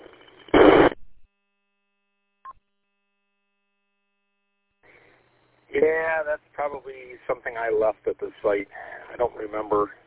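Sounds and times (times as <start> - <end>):
radio squelch tail static on unkeying the mic: 0.0 - 1.2, 5.8 - 10.0
speech: 5.8 - 10.0.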